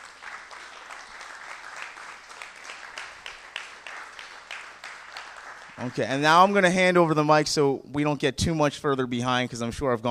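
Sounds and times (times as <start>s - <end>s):
church audience applauding: 0.0s - 6.5s
speech: 5.8s - 10.1s.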